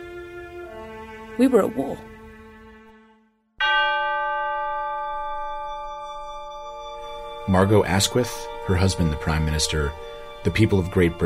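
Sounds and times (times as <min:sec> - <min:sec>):
speech: 0:01.4 - 0:02.1, 0:07.5 - 0:11.2
mantelpiece clock chime striking the hour: 0:03.6 - 0:11.2.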